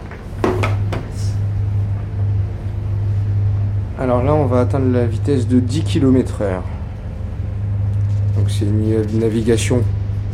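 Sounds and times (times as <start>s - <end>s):
sharp clanks and knocks: 0.0s - 1.2s
cargo ship engine rumbling at departure: 0.0s - 10.3s
speech: 4.0s - 6.8s, 8.5s - 10.0s.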